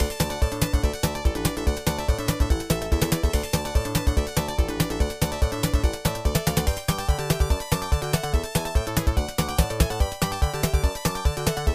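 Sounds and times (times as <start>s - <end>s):
background music: 0.0s - 11.7s.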